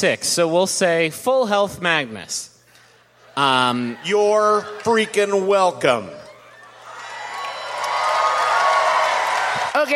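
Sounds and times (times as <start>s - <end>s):
speech: 0.0s - 2.5s, 3.4s - 6.2s
crowd applauding and cheering: 6.2s - 9.9s.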